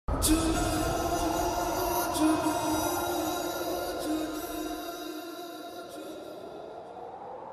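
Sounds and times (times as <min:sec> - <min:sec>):
echo: 0:00.1 - 0:07.5.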